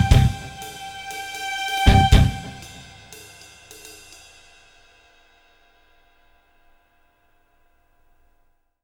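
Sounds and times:
suspenseful tense action music: 0.0s - 3.2s.

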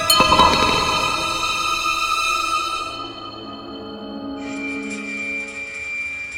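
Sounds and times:
tense horror ambience of a strange place: 0.1s - 2.9s.

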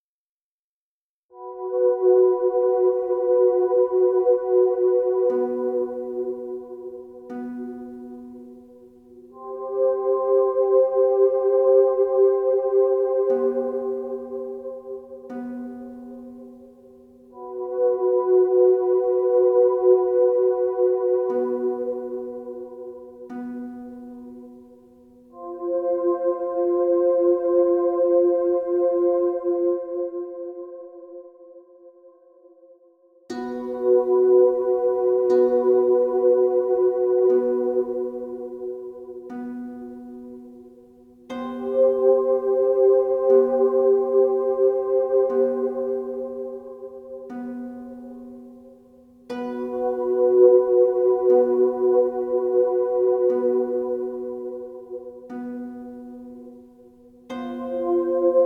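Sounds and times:
harp: 1.4s - 30.2s, 33.3s - 58.4s.

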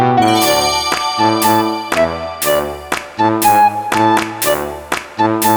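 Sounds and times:
bright background music: 0.2s - 5.5s.

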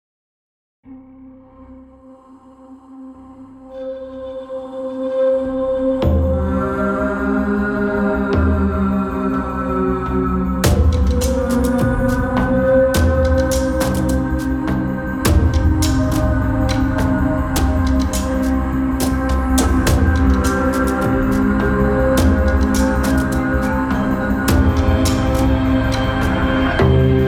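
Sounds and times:
tense music: 5.8s - 27.2s.

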